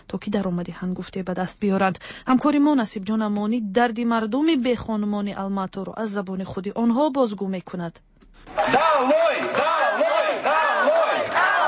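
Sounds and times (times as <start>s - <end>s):
speech: 0.1s - 11.0s
crowd of protesters chanting slogans against the government in a garden in Almaty: 8.5s - 11.6s.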